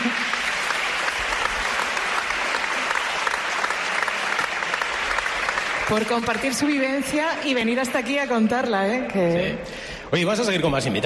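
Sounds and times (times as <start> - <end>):
audience applause: 0.0 - 7.3
speech: 5.9 - 11.0.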